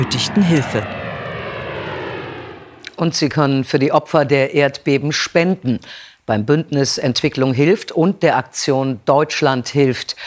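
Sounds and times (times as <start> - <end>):
speech: 0.0 - 1.0, 3.0 - 10.2
airplane taking off: 0.0 - 3.6.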